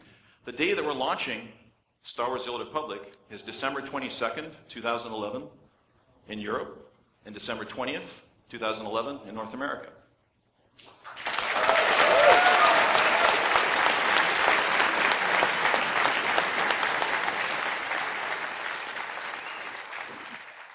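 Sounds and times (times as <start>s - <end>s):
speech: 0.5s - 5.6s, 6.3s - 10.0s
lukewarm audience applause at the Star Wars The Old Republic launch: 10.9s - 20.7s.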